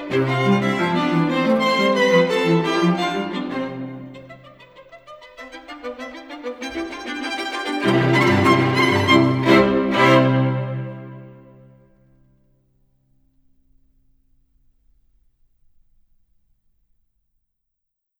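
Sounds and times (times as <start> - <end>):
string quartet playing a presto in C major: 0.0 - 11.7.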